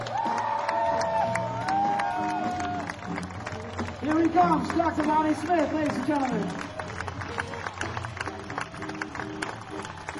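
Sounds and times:
whoops and shouts: 0.0 - 3.0
live audience applauding: 0.0 - 10.1
speech: 4.1 - 6.7.

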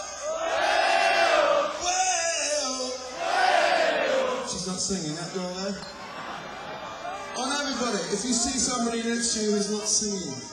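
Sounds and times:
crowd cheering and yelling: 0.2 - 2.1, 3.0 - 5.0, 5.9 - 9.5
speech: 4.9 - 6.0, 8.1 - 10.5.

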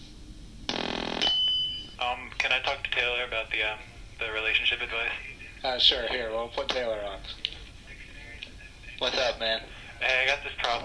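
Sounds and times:
telephone ringing: 0.7 - 2.0
speech: 2.5 - 7.5, 9.0 - 10.8.

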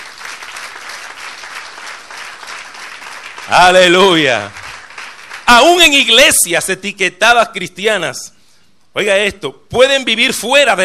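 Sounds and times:
audience applause: 0.0 - 5.6
speech: 3.5 - 4.6, 5.5 - 8.4, 9.0 - 10.8.

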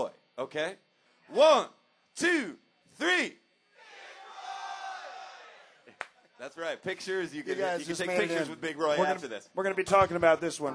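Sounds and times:
speech: 0.4 - 3.4, 6.4 - 10.7
crowd screaming loudly in unison: 3.8 - 5.9.

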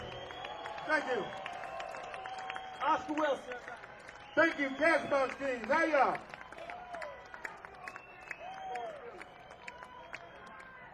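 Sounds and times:
audience cheering including children: 0.0 - 10.9
speech: 0.9 - 1.5, 2.8 - 6.3.

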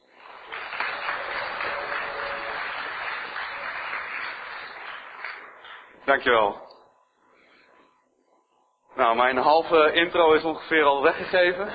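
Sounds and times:
audience applause: 0.0 - 6.0
speech: 6.1 - 6.7, 9.1 - 11.7.

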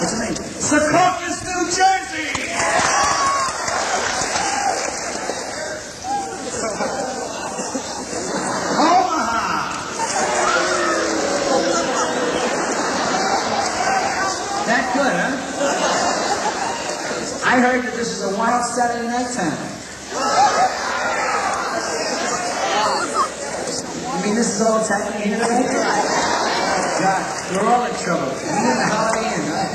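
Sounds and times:
speech: 0.6 - 2.8, 17.8 - 19.7, 24.6 - 25.9, 27.1 - 28.7
large crowd cheering: 0.9 - 17.6, 20.1 - 24.5, 25.2 - 29.7
clapping: 2.3 - 5.4
people shouting: 2.4 - 4.9, 9.1 - 15.0, 20.1 - 23.6
laughter: 2.6 - 17.6, 20.0 - 24.2, 25.0 - 29.7.

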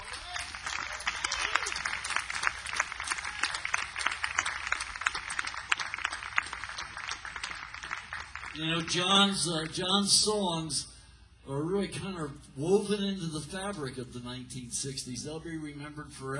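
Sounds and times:
audience applause: 0.0 - 9.8
speech: 8.6 - 10.9, 11.5 - 16.3.

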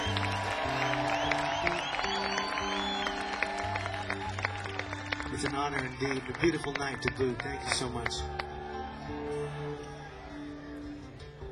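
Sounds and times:
audience applause: 0.0 - 11.5
speech: 5.4 - 8.4.

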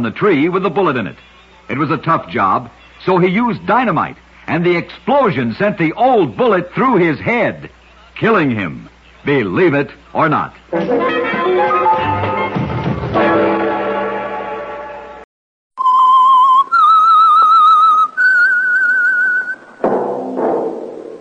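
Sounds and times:
speech: 0.0 - 11.6
loud dense burst of music: 10.7 - 15.2
whistled theme tune: 15.8 - 19.8.

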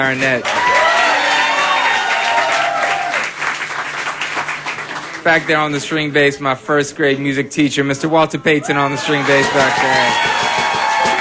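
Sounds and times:
speech: 0.0 - 0.9, 5.2 - 10.5
audience applause and cheering: 0.0 - 5.8, 8.7 - 11.1.

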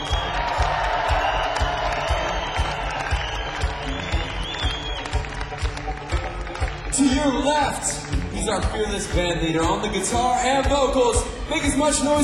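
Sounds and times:
scattered whoops: 0.0 - 5.5
crowd applauding for the drummer at a live show: 0.0 - 12.0
speech: 7.2 - 12.2.

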